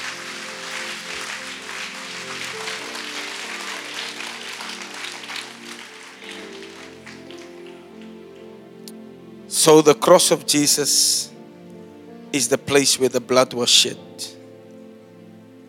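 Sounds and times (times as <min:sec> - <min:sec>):
audience clapping: 0:00.0 - 0:08.6
low musical tones: 0:00.0 - 0:15.6
speech: 0:09.6 - 0:11.3, 0:12.4 - 0:14.4.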